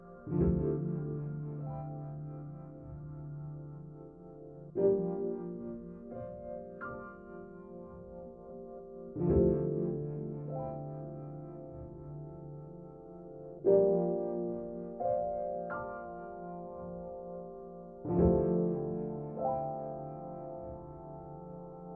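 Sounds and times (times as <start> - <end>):
piano chords: 0.0 - 21.9.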